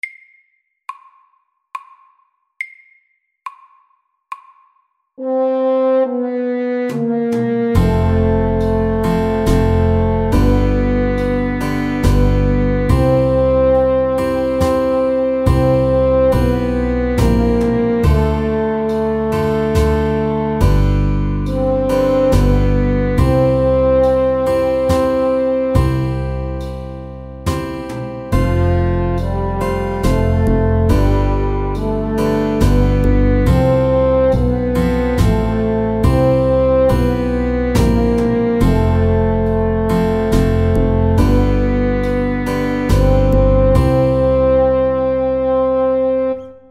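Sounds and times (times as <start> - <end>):
ballade music: 5.2 - 46.6.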